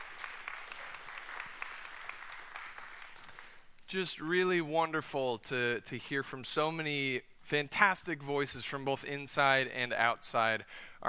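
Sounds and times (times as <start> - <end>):
audience round of applause: 0.0 - 3.6
speech: 3.9 - 11.0.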